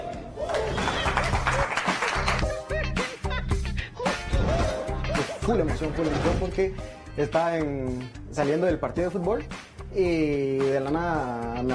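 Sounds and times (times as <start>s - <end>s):
cheers and whoops: 0.0s - 2.6s
audience applause: 0.4s - 2.5s
laughter: 0.5s - 3.5s, 4.4s - 6.4s
thumping rhythmic beat: 1.2s - 11.7s
speech: 5.5s - 11.7s.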